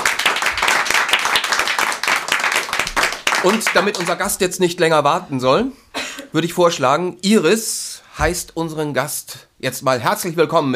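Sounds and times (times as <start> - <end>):
audience applause: 0.0 - 4.3
speech: 3.4 - 10.7.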